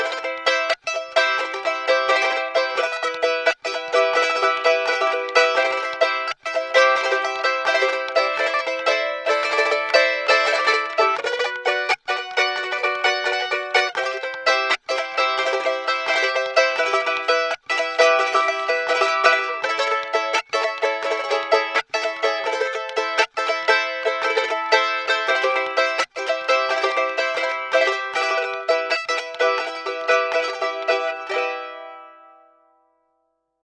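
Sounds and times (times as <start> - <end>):
charango strum recorded raw through a piezo pickup: 0.0 - 32.8.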